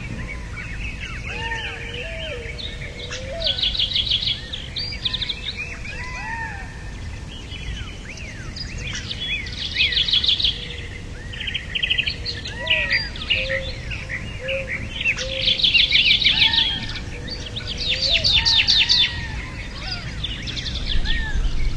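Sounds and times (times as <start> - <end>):
flock of birds chirping and trilling: 0.0 - 21.7.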